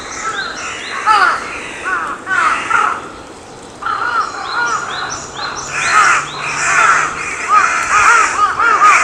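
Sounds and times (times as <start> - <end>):
crow giving loud harsh caws: 0.1 - 3.2, 3.8 - 9.0.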